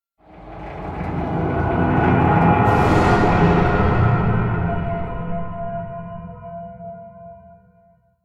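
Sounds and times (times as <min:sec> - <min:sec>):
long swelling stinger: 0:00.2 - 0:07.0.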